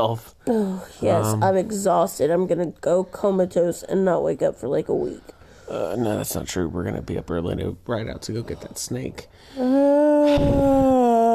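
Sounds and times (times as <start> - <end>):
speech: 0.0 - 11.1
person yawning: 9.5 - 11.3.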